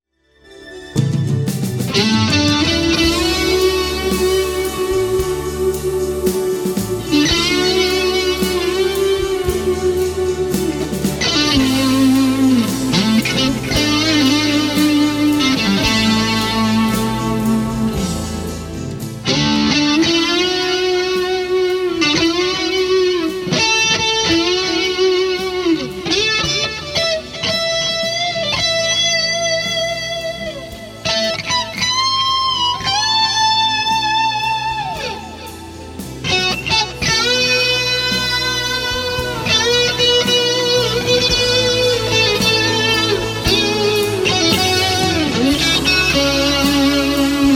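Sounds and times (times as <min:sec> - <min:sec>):
solo vintage guitar: 0:00.9 - 0:47.5.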